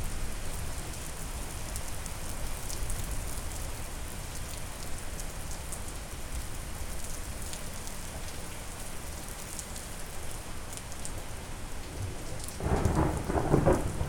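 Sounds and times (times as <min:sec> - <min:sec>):
relaxing rain: 0:00.0 - 0:14.0
loud thunder: 0:12.6 - 0:14.0.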